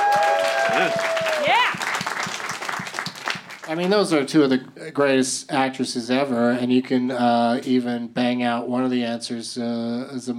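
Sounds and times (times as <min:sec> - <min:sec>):
audience applause: 0:00.0 - 0:03.9
speech: 0:03.7 - 0:10.3.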